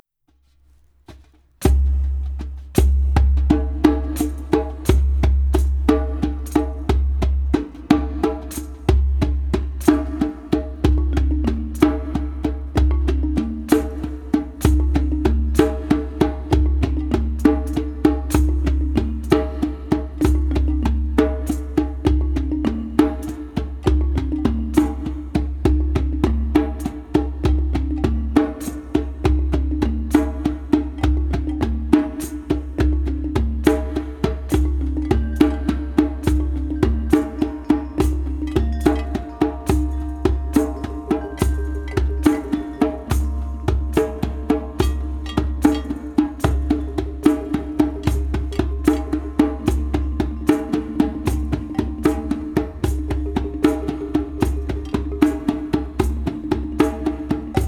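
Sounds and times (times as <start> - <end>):
shaman drum beat: 1.0 - 57.6.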